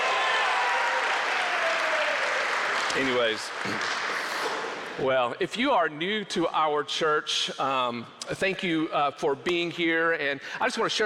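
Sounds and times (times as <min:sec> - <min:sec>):
round of applause: 0:00.0 - 0:04.8
speech: 0:03.0 - 0:04.0, 0:05.0 - 0:11.0.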